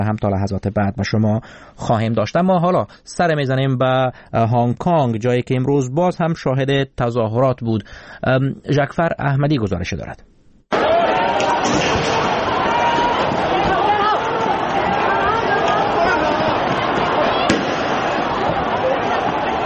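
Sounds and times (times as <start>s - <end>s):
speech: 0.0s - 10.3s
dense crowd roaring and chattering: 10.7s - 19.6s
sharp bang: 17.5s - 18.0s.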